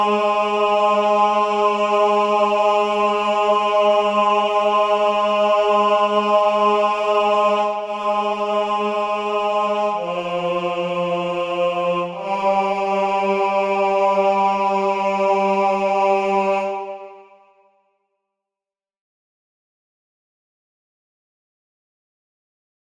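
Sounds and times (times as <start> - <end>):
tenor singing: 0.0 - 17.4.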